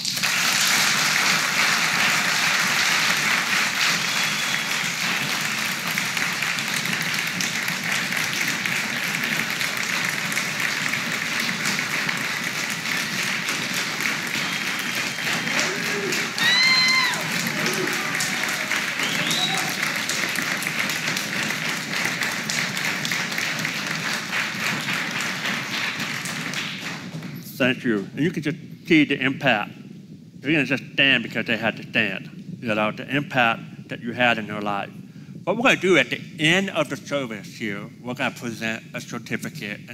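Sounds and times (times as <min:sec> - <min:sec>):
audience applause: 0:00.0 - 0:27.3
faint cheers: 0:14.1 - 0:20.4
speech: 0:27.6 - 0:29.8, 0:30.4 - 0:39.9.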